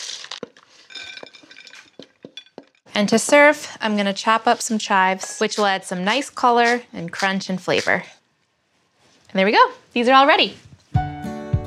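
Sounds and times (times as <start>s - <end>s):
stirring food in a bowl: 0.6s - 8.2s
speech: 3.0s - 8.2s, 9.3s - 10.6s.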